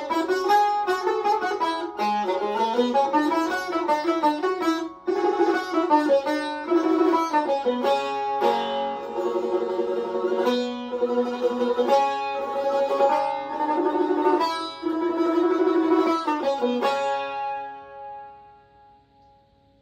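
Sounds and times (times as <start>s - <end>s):
tar instrument: 0.0s - 19.6s.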